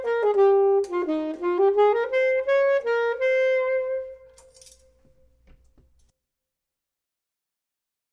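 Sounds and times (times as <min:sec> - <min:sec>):
saxophone: 0:00.0 - 0:04.4
clarinet: 0:00.0 - 0:04.5.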